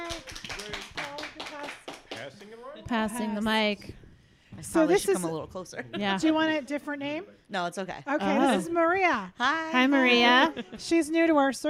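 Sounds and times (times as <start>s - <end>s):
group clapping: 0.0s - 2.6s
speech: 2.9s - 4.0s, 4.7s - 11.6s.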